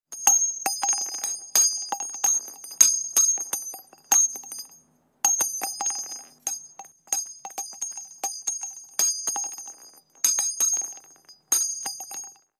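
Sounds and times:
.50 caliber shell casings hitting asphalt: 0.2 - 12.5.

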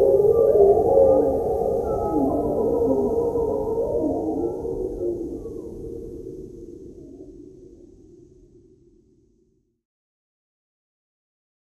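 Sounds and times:
birds: 0.0 - 5.8.

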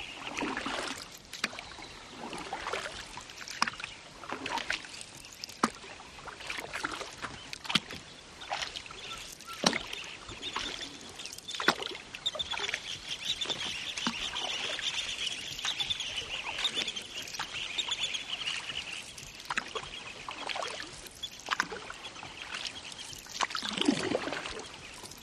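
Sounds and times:
Zambezi atmosphere in Zimbabwe: 0.0 - 25.2
canoe paddling on the Zambezi in Zimbabwe: 0.0 - 25.2
plovers calling: 9.0 - 20.1.

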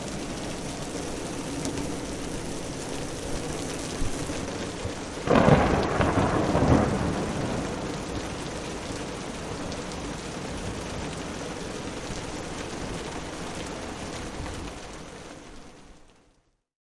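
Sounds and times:
rainstorm rain: 0.0 - 16.7
thunder: 5.2 - 11.4.

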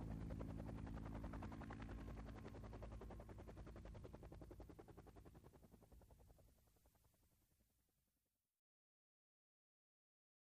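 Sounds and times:
AH-1 Cobra helicopter: 0.0 - 7.7.

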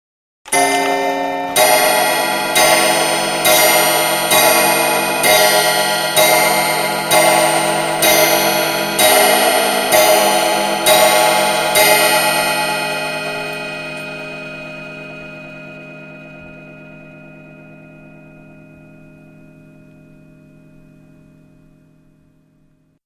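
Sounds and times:
wall clock striking twelve on a brass coil bell: 0.5 - 15.3
quarter hour bell of wall clock: 0.5 - 21.4.

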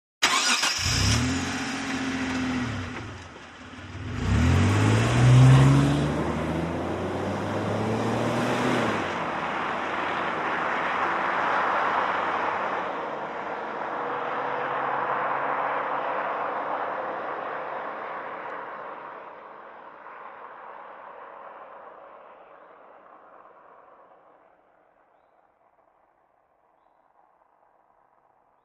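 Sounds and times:
1998 Mitsubishi Montero engine starting, exterior: 0.2 - 12.2
1998 Mitsubishi Montero driving away fast: 0.2 - 19.0.

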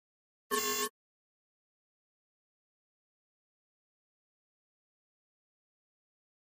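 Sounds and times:
mouse-over electronic pulse: 0.5 - 0.9.

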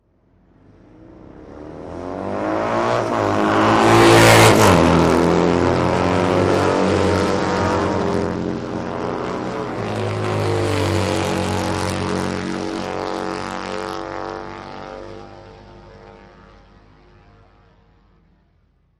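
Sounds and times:
motorcycles road racing: 0.2 - 18.5.

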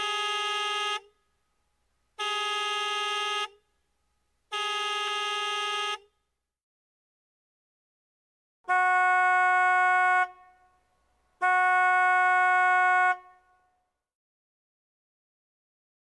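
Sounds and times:
medium American car horn: 0.0 - 1.2, 2.2 - 3.7, 4.5 - 6.2, 8.6 - 13.9.

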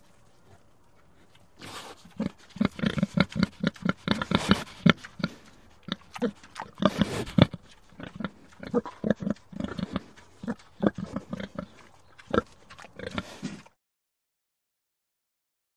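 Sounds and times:
pig grunting while eating: 0.2 - 13.8.

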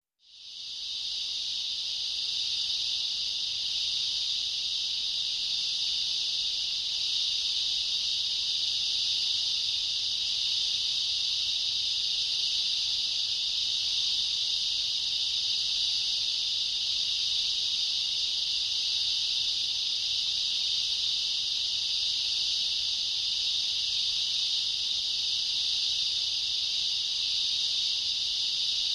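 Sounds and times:
night jungle ambience: 0.2 - 28.9.

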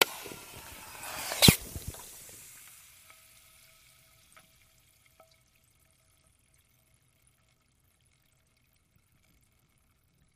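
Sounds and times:
soda can opening: 0.0 - 2.6.

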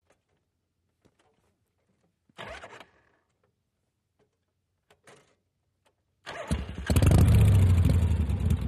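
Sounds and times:
Harley motorcycle false start: 2.4 - 3.5, 6.2 - 8.5.

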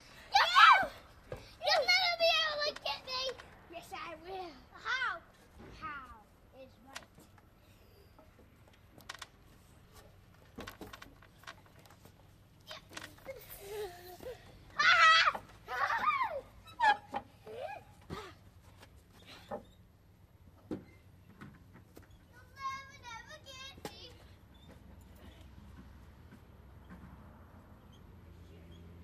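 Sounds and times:
children playing: 0.2 - 6.2, 12.7 - 18.2.

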